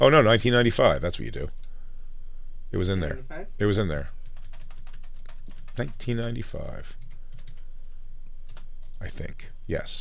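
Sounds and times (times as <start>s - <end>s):
speech: 0.0s - 1.6s, 2.7s - 4.2s, 5.8s - 7.0s, 9.0s - 10.0s
typing on a computer keyboard: 4.2s - 6.4s, 7.0s - 7.6s, 8.5s - 8.9s.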